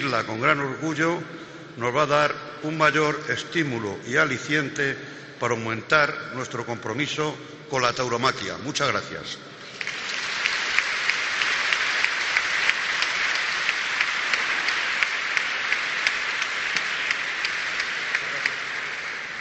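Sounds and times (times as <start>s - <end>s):
speech: 0.0s - 9.5s
audience applause at award ceremony: 9.7s - 19.3s.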